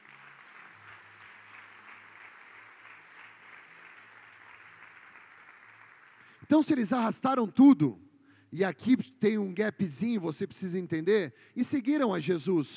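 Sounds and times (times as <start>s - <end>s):
audience applauding: 0.0s - 6.4s
speech: 6.4s - 12.7s.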